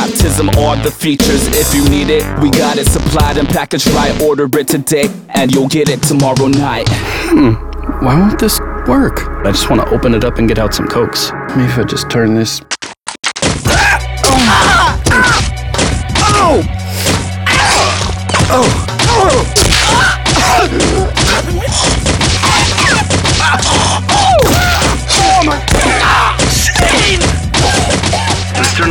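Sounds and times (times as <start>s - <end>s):
speech: 0.4s - 12.8s, 16.4s - 16.8s, 18.5s - 22.2s, 26.8s - 28.8s
booby trap going off with whacks, crashes and swishes: 13.4s - 17.3s, 18.0s - 28.8s.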